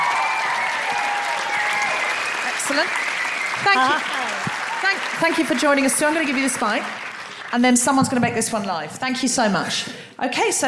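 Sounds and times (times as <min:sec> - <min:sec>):
audience applause: 0:00.0 - 0:08.0
speech: 0:02.7 - 0:04.2, 0:04.8 - 0:10.6.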